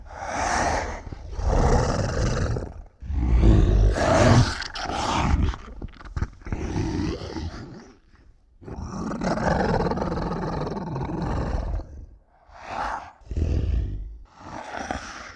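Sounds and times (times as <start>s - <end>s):
monster breathing: 0.0s - 7.2s, 11.1s - 15.3s
fierce, frightening monster growling: 0.0s - 7.9s, 8.7s - 15.3s.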